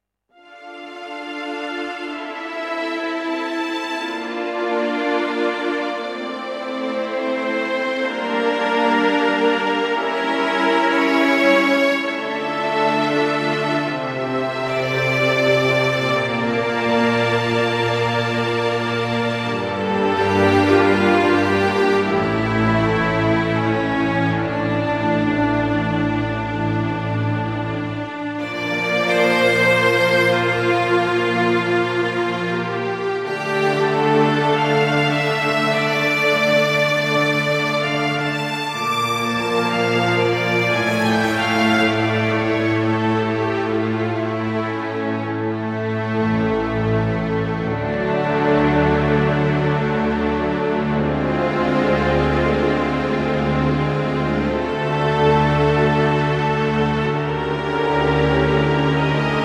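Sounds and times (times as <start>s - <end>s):
full string section: 0.3s - 59.4s.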